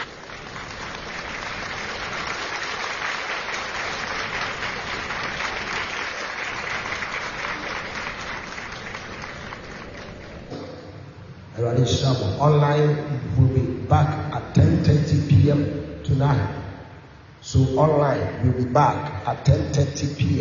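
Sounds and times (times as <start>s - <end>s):
audience clapping: 0.0s - 10.5s
speech: 11.8s - 16.6s, 17.4s - 20.3s.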